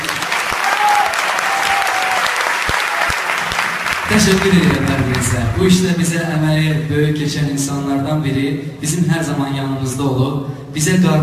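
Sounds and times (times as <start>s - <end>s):
audience applause: 0.0s - 6.1s
speech: 4.1s - 11.2s.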